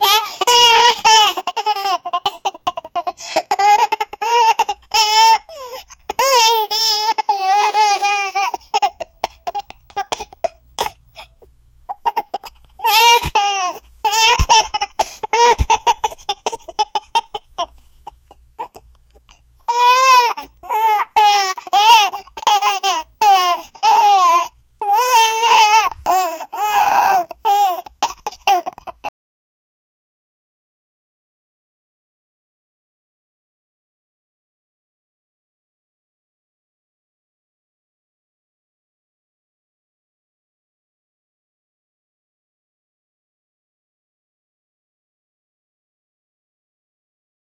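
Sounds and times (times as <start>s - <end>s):
infant laughing: 0.0s - 18.8s, 19.7s - 29.1s.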